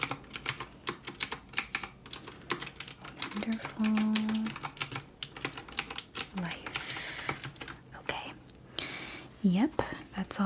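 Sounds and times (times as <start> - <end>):
typing on a computer keyboard entering inventory in a retro video game store: 0.0 - 7.8
speech: 3.4 - 4.8, 6.4 - 6.7, 9.4 - 10.4.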